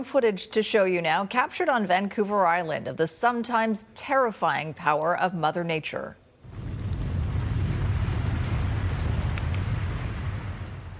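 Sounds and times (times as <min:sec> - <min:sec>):
speech: 0:00.0 - 0:06.2
snow crashing down the side of a mountain in an avalanche: 0:06.5 - 0:10.9.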